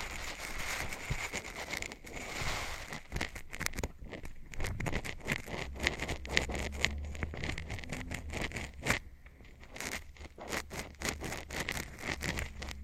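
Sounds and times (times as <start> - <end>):
scratching and tapping: 0.0 - 12.8
low rumble: 5.6 - 9.7.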